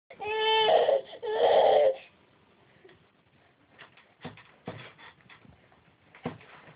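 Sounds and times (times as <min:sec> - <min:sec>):
hungry baby girl crying: 0:00.2 - 0:02.1.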